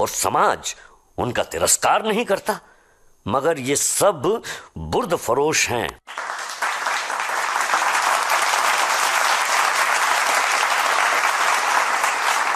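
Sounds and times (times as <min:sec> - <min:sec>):
speech: 0:00.0 - 0:06.3
audience applauding after a long humorous lecture: 0:06.1 - 0:12.5.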